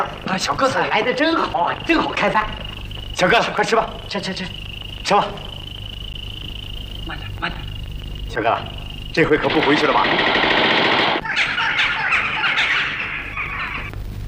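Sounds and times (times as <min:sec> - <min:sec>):
speech: 0:00.0 - 0:02.6, 0:03.2 - 0:05.5, 0:07.1 - 0:07.7, 0:08.3 - 0:10.9
gunshots fired at crows: 0:09.3 - 0:11.2
laughter: 0:11.2 - 0:13.9.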